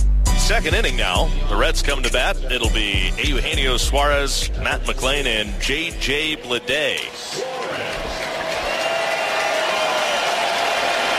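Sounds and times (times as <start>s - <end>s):
speech: 0.5s - 7.8s
Chase Field crowd giving batter a reception: 6.4s - 11.1s.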